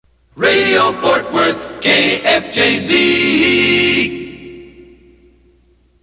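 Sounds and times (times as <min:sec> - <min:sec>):
a cappella singing: 0:00.4 - 0:05.0.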